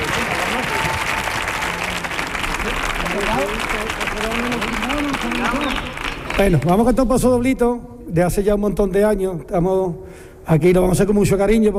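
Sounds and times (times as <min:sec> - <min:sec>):
audience applause: 0:00.0 - 0:06.9
speech: 0:05.2 - 0:11.7.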